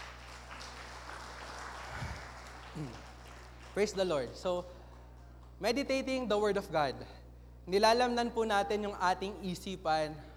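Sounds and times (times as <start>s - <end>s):
church congregation applauding for the Lord during a service: 0.0s - 5.5s
speech: 2.8s - 3.1s, 3.8s - 4.8s, 5.6s - 10.3s.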